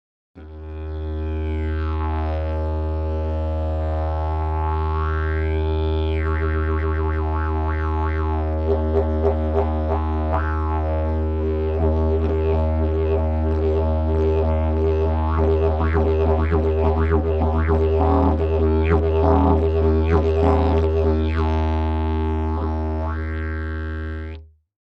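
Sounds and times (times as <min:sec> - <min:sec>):
didgeridoo: 0:00.4 - 0:24.5.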